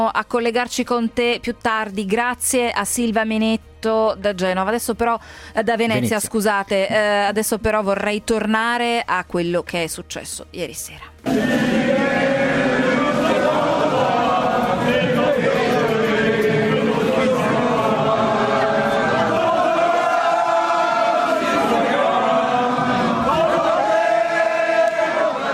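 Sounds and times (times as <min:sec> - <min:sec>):
speech: 0:00.0 - 0:12.2
French fans singing an anthem leaving stadium: 0:11.2 - 0:25.5.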